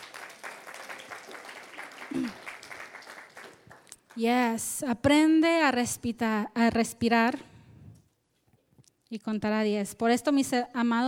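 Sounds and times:
audience applause: 0.0 - 4.0
speech: 2.1 - 2.4, 4.2 - 7.5, 9.1 - 11.0.

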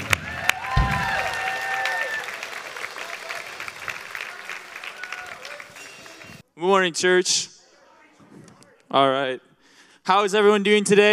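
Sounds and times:
whoops and cheers: 0.0 - 3.6, 4.3 - 5.8
crowd applauding: 0.0 - 6.4
speech: 6.6 - 7.5, 8.9 - 9.5, 10.1 - 11.1.

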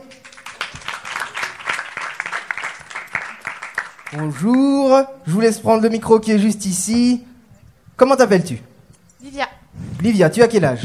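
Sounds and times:
audience applause: 0.0 - 4.7
speech: 4.1 - 7.3, 8.0 - 10.8.

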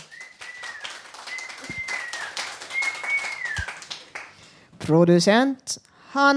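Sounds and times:
applause: 0.0 - 4.5
speech: 4.9 - 6.3.

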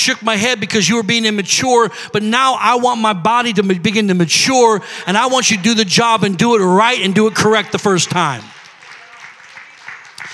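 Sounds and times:
speech: 0.0 - 8.6
audience clapping: 5.1 - 10.3.

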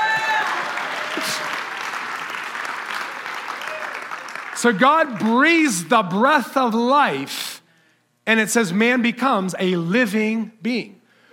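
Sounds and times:
round of applause: 0.0 - 5.4
speech: 4.6 - 7.5, 8.3 - 11.0.

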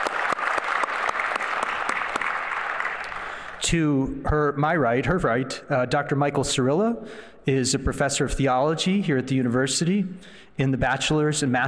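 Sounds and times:
audience applause at a university panel discussion welcoming a panel speaker: 0.0 - 3.6
speech: 3.6 - 11.6.

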